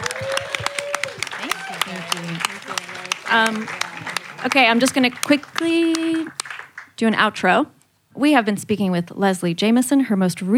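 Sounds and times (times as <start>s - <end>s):
audience applause: 0.0s - 7.0s
speech: 3.3s - 3.8s, 4.4s - 6.4s, 7.0s - 10.5s.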